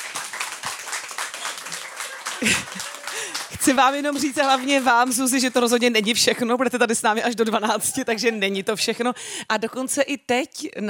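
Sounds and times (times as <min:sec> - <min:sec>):
audience applause: 0:00.0 - 0:05.9
laughter: 0:01.3 - 0:04.8, 0:07.5 - 0:08.9
speech: 0:02.4 - 0:10.8.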